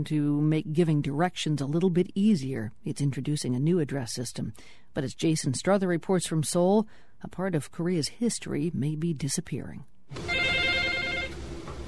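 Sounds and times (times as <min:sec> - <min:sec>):
speech: 0:00.0 - 0:10.4
telephone ringing with an electronic trill: 0:10.2 - 0:11.4.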